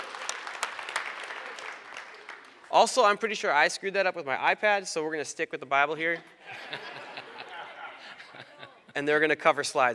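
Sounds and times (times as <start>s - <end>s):
scattered audience applause for a tech team: 0.0s - 2.7s
speech: 2.8s - 6.9s, 9.0s - 9.9s
laughter: 6.2s - 9.1s.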